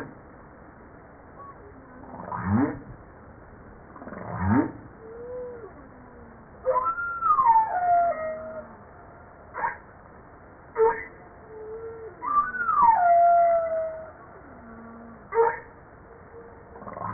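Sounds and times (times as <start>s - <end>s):
humpback whale song: 4.0s - 9.8s, 10.8s - 17.1s.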